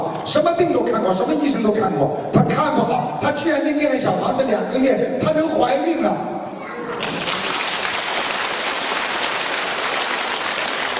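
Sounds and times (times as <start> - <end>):
speech: 0.3 - 6.4
audience applause: 6.9 - 10.9.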